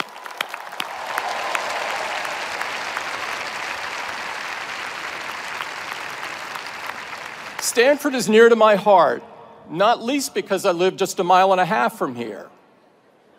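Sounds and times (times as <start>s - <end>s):
audience applause for fathers: 0.0s - 8.2s
speech: 7.7s - 12.5s.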